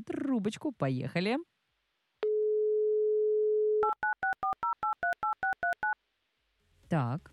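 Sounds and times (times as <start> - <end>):
speech: 0.0 - 1.5, 6.9 - 7.3
telephone ringing tone while dialing: 2.2 - 6.0.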